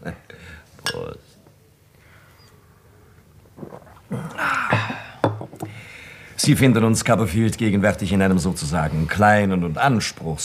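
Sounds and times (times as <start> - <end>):
glasses clinking in a toast among gentlemen: 4.6 - 5.7
speech: 6.4 - 10.4.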